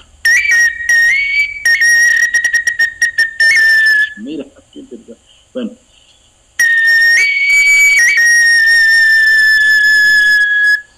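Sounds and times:
water-filled whistle blown: 0.2 - 4.2, 6.6 - 10.9
speech: 5.2 - 5.8.

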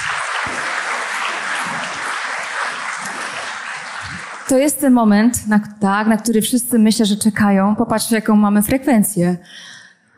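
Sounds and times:
audience applause: 0.0 - 4.8
speech: 4.5 - 9.7.

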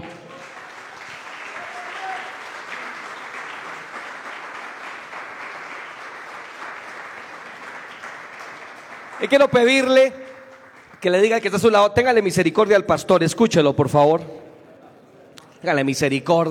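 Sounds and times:
audience applause: 0.0 - 11.4
speech: 9.2 - 10.4, 11.0 - 14.4, 15.6 - 16.5.

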